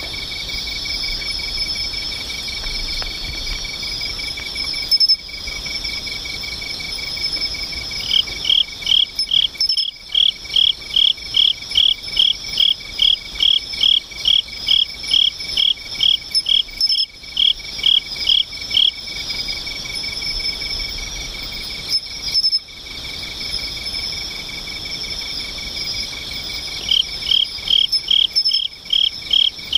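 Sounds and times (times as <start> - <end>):
insects singing together in pulsed trills and chirps: 0.0 - 29.7.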